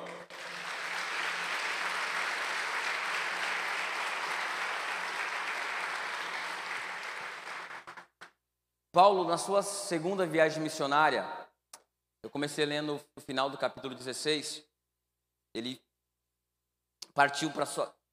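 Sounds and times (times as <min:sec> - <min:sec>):
audience applause: 0:00.0 - 0:08.3
speech: 0:09.0 - 0:11.4, 0:12.3 - 0:14.7, 0:15.6 - 0:15.8, 0:17.2 - 0:18.0.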